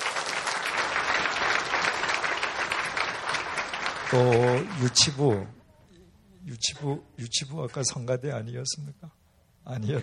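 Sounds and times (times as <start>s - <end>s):
audience applause: 0.0s - 5.5s
speech: 4.1s - 5.6s, 6.4s - 10.0s.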